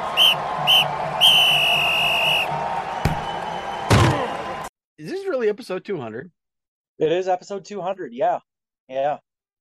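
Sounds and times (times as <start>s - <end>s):
referee whistle signalling an opening kickoff: 0.1s - 3.5s
speech: 5.5s - 9.2s.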